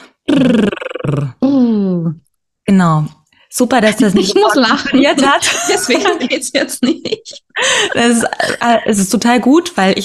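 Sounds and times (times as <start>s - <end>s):
voiced lip trill imitating a horse snorting: 0.2s - 1.6s
speech: 0.4s - 1.4s, 2.8s - 10.0s
laughter: 3.9s - 8.8s.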